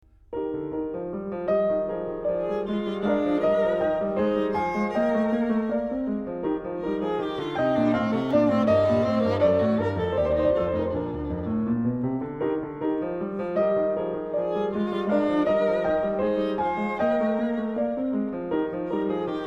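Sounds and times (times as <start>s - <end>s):
violin sonata in E flat variation: 1.3s - 19.4s.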